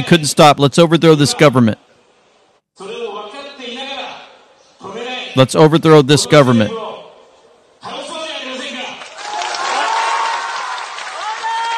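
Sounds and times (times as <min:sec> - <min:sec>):
speech: 0:00.0 - 0:01.9, 0:05.4 - 0:06.9
crowd cheering and applauding: 0:09.0 - 0:11.7.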